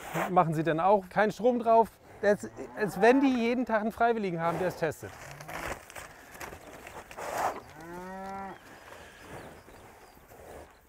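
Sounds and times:
speech: 0:00.1 - 0:05.3
cattle mooing on a large farm: 0:02.2 - 0:03.5, 0:07.3 - 0:08.7.

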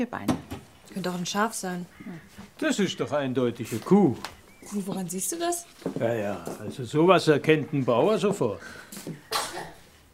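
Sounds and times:
speech: 0:00.0 - 0:00.4, 0:01.0 - 0:09.2
sneeze: 0:09.3 - 0:09.8.

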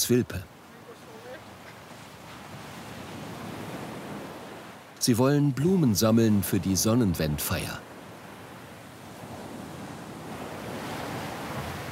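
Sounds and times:
speech: 0:00.0 - 0:00.5, 0:05.0 - 0:07.9
surf on Latvian Baltic coast: 0:00.0 - 0:11.8
strong wind on Latvian Baltic coast: 0:00.9 - 0:04.9, 0:07.8 - 0:11.8.

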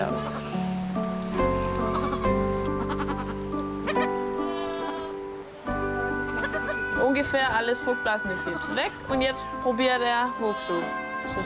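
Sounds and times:
steady patter like rain: 0:00.0 - 0:07.8
speech: 0:00.2 - 0:00.6, 0:07.3 - 0:11.4
goats bleating in goat stall: 0:01.8 - 0:05.2, 0:06.2 - 0:06.8, 0:10.4 - 0:11.0.

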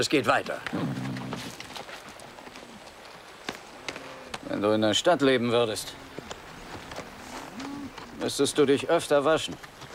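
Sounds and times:
speech: 0:00.0 - 0:01.0, 0:04.5 - 0:06.0, 0:08.2 - 0:09.7
horse hooves clip-clopping at a walking pace: 0:00.0 - 0:09.9.

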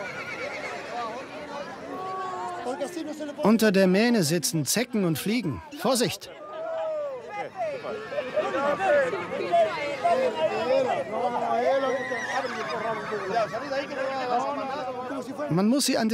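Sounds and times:
horses whinnying and neighing during mane clipping: 0:00.0 - 0:01.4, 0:07.5 - 0:14.8
crowd murmuring and chattering: 0:00.0 - 0:15.5
speech: 0:02.7 - 0:06.4, 0:07.8 - 0:16.1.

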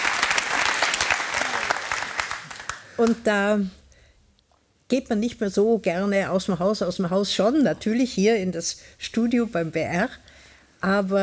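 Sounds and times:
audience applause: 0:00.0 - 0:03.0
speech: 0:03.0 - 0:03.8, 0:04.9 - 0:11.2.

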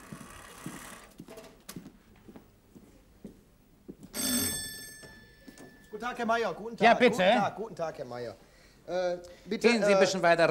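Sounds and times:
doorbell ringing: 0:04.2 - 0:06.4
speech: 0:06.0 - 0:10.4.

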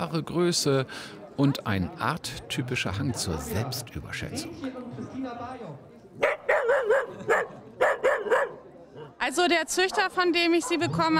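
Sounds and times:
speech: 0:00.0 - 0:07.6, 0:09.2 - 0:11.1
dachshund barking: 0:06.2 - 0:09.2, 0:09.8 - 0:10.9.

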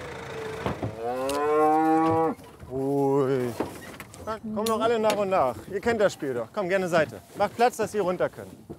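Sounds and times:
cows mooing: 0:00.0 - 0:02.6
speech: 0:04.4 - 0:08.6.

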